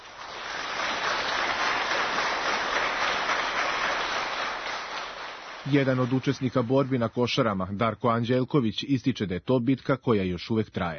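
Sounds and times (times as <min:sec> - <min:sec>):
applause for Košare battle veterans at a book promotion: 0:00.0 - 0:07.3
speech: 0:05.7 - 0:10.9.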